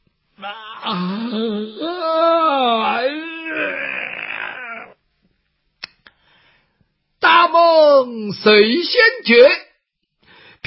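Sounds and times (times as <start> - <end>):
speech: 0.4 - 2.0, 8.3 - 9.6
man's voice imitating a yawn and stretch: 0.4 - 5.0.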